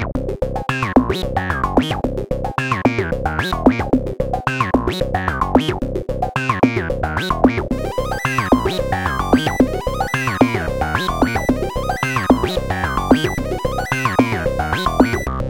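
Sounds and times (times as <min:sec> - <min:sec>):
synth: 0:00.2 - 0:07.2, 0:07.7 - 0:15.3.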